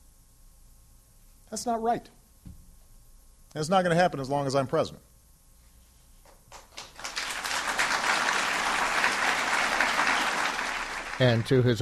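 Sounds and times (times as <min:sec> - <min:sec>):
speech: 0:01.5 - 0:02.2, 0:03.6 - 0:05.1, 0:11.2 - 0:11.8
audience applause during a speech: 0:06.5 - 0:11.8.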